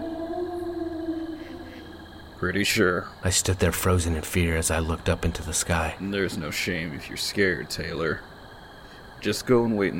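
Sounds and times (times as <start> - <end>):
long loud werewolf howl: 0.0 - 2.5
speech: 2.4 - 8.3, 9.2 - 9.9.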